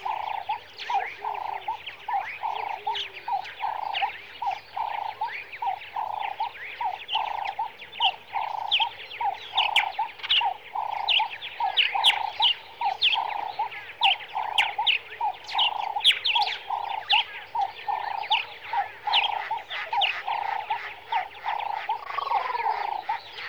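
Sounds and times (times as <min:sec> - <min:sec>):
birds in the early morning in Kenya: 0:00.0 - 0:23.4.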